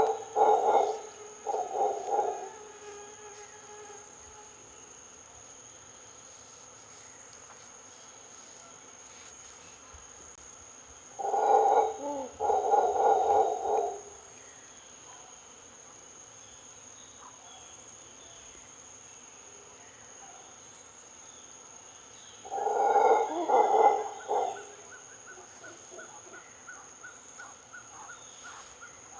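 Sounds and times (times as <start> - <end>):
mantled howler Alouatta palliata howling: 0.0 - 2.8, 11.2 - 14.2, 22.5 - 26.6.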